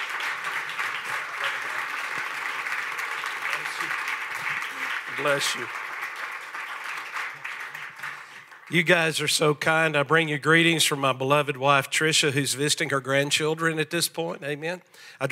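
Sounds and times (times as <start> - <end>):
crowd applauding: 0.0 - 9.6
speech: 5.2 - 5.8, 8.7 - 15.3.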